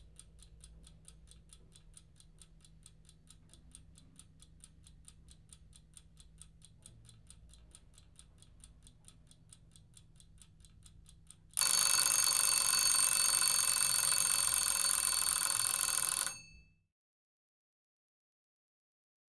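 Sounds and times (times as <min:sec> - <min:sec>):
alarm clock ticking: 0:00.0 - 0:16.6
alarm clock ringing: 0:11.6 - 0:16.6.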